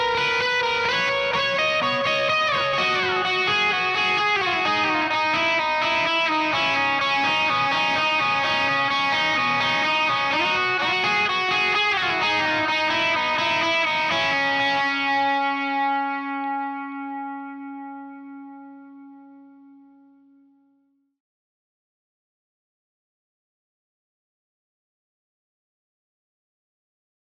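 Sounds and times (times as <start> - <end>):
bass guitar: 0.0 - 20.0.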